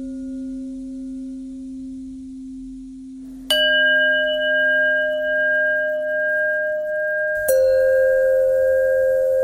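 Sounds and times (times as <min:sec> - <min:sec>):
bells ringing: 0:03.5 - 0:09.4.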